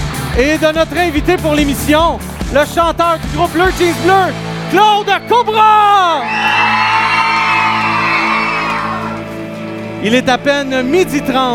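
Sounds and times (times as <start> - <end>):
speech: 0.4 - 6.6, 10.0 - 11.5
live audience at a midday show cheering and whooping: 6.2 - 9.4.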